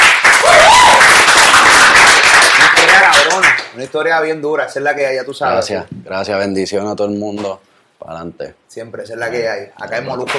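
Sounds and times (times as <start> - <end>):
audience applause: 0.0 - 3.8
brief rising whoop: 0.4 - 1.2
speech: 3.8 - 10.3.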